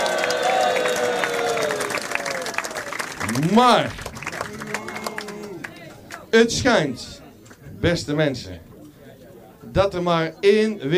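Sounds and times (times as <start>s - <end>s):
crowd applause: 0.0s - 6.2s
speech: 3.3s - 4.0s, 6.3s - 7.1s, 7.8s - 8.7s, 9.8s - 10.9s.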